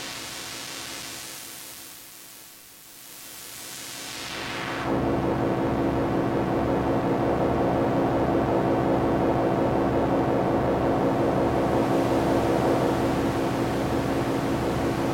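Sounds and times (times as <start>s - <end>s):
noisy bug: 4.3s - 15.1s.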